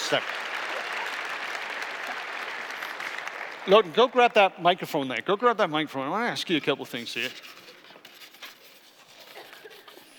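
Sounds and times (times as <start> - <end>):
crowd clapping: 0.0 - 4.6
speech: 0.1 - 0.4, 3.6 - 7.6.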